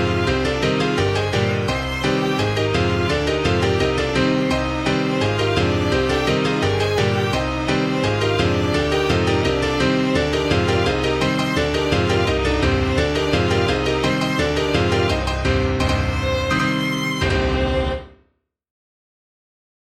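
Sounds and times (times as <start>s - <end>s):
violin: 0.0s - 18.2s
piano: 0.0s - 18.3s.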